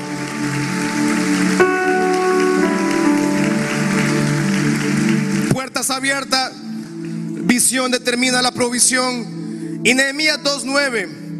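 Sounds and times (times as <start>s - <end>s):
audience applauding: 0.0s - 7.8s
speech: 6.0s - 6.6s, 7.6s - 11.2s.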